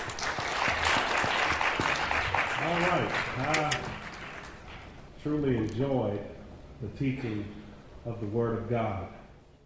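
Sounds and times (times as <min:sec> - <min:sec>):
audience hand clapping: 0:00.0 - 0:04.9
speech: 0:02.7 - 0:03.9, 0:05.2 - 0:09.2.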